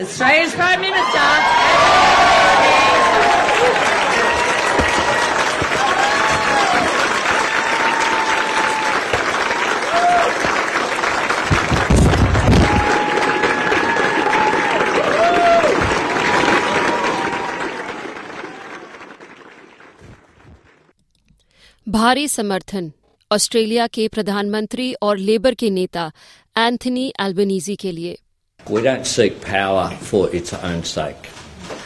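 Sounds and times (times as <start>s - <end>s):
speech: 0.0s - 2.9s, 22.0s - 31.8s
crowd cheers and whoops: 0.9s - 10.6s, 12.4s - 19.1s
crowd applause for speaker: 0.9s - 20.9s.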